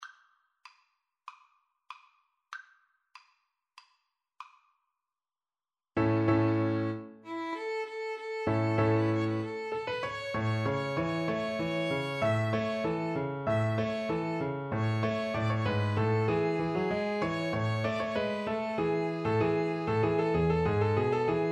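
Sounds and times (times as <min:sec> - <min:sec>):
piano: 0:06.0 - 0:21.5
violin: 0:06.0 - 0:21.5.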